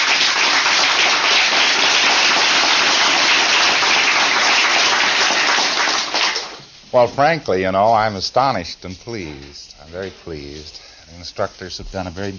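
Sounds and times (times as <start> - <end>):
audience applause: 0.0 - 6.6
speech: 6.9 - 12.3.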